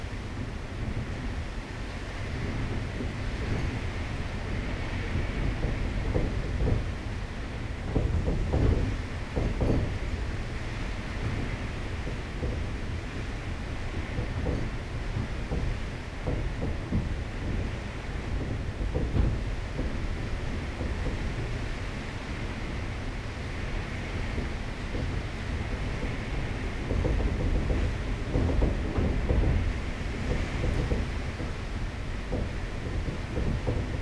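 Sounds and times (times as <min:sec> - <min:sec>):
storm outside a door in Curacao: 0:00.0 - 0:34.0.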